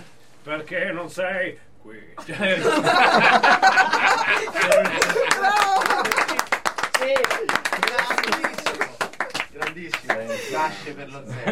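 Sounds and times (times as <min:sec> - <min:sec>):
speech: 0:00.4 - 0:06.4, 0:07.0 - 0:08.5, 0:09.8 - 0:11.5
laughter: 0:02.2 - 0:09.4, 0:10.0 - 0:11.5
hand clapping applause: 0:04.1 - 0:10.3.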